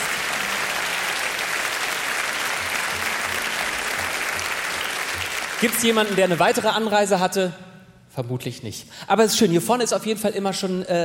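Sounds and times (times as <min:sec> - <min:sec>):
audience clapping: 0:00.0 - 0:07.0
speech: 0:05.6 - 0:11.0.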